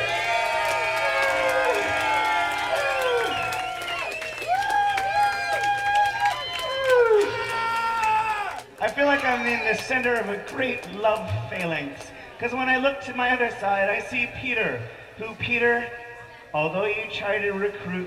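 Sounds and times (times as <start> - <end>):
crowd cheering and whooping: 0.0 - 9.8
clapping: 0.4 - 11.8
speech: 9.7 - 18.0.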